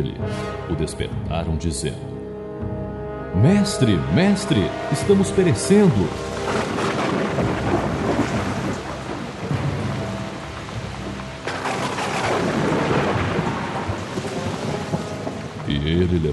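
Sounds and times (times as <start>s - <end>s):
speech: 0.0s - 2.2s, 3.4s - 7.9s, 15.8s - 16.3s
rain: 4.3s - 16.3s
windstorm: 4.6s - 16.3s
thunder: 6.1s - 16.3s.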